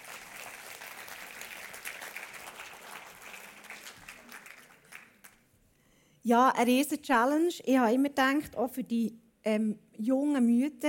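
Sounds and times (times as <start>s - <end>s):
audience applause: 0.0s - 5.4s
speech: 6.2s - 10.8s.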